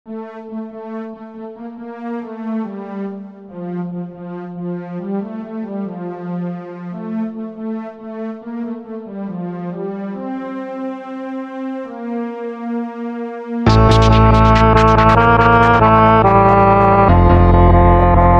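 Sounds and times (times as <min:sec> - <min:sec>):
instrumental music: 0:13.6 - 0:18.3.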